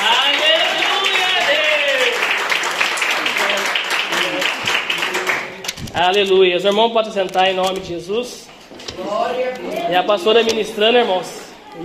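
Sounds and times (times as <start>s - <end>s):
audience applauding: 0.0s - 5.8s
speech: 6.0s - 11.8s.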